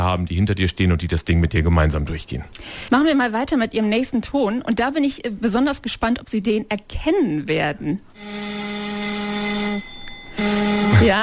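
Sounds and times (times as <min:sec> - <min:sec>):
speech: 0:00.0 - 0:08.8, 0:10.4 - 0:11.2
Deutscher Bundestag parliamentary voting gong: 0:08.2 - 0:11.2.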